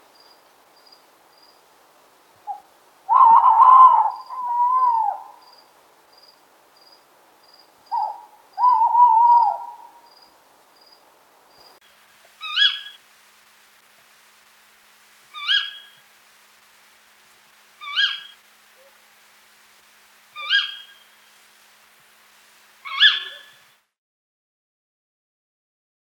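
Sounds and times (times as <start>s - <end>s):
tawny owl calling: 2.5s - 5.5s, 7.9s - 10.1s, 12.4s - 13.0s, 15.3s - 16.0s, 17.8s - 19.0s, 20.3s - 21.3s, 22.8s - 23.6s.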